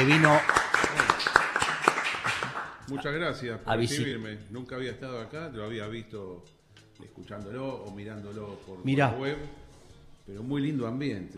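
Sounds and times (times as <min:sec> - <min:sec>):
speech: 0:00.0 - 0:01.1, 0:02.9 - 0:09.6, 0:10.3 - 0:11.3
applause welcoming a guest: 0:00.0 - 0:03.0.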